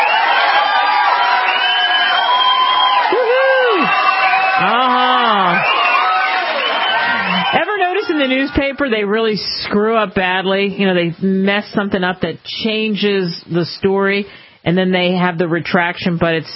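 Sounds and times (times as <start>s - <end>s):
applause: 0.0s - 8.6s
speech: 8.3s - 16.5s.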